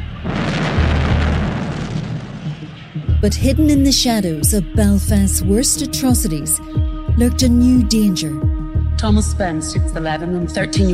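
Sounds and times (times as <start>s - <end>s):
massive explosion after grenade thrown: 0.0s - 3.0s
speech: 3.2s - 10.9s.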